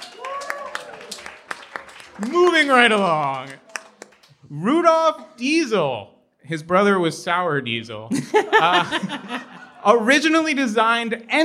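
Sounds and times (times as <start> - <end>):
round of applause: 0.0 - 4.8
speech: 2.2 - 3.6, 4.5 - 11.4
laughter: 8.1 - 10.4.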